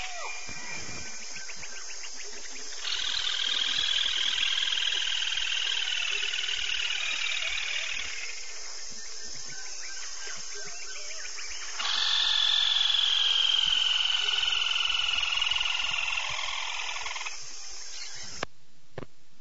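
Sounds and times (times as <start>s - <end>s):
rufous-sided crake family party calling: 0.0s - 18.5s.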